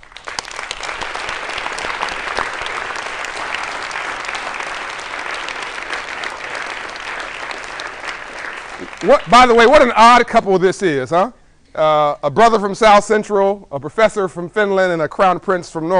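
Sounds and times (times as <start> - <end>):
audience applause: 0.0 - 9.6
speech: 9.0 - 15.9.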